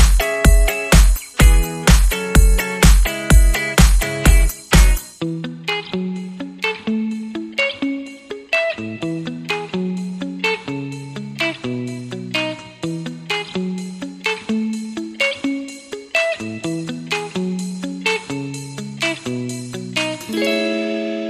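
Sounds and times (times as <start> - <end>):
main beat: 0.0 - 5.1
funk guitar: 0.0 - 21.2.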